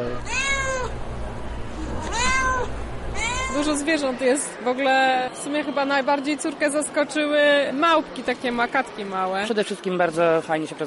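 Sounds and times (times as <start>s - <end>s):
low rumble: 0.0s - 4.2s
cat meowing: 0.2s - 0.9s, 2.0s - 3.8s
speech: 3.6s - 10.8s.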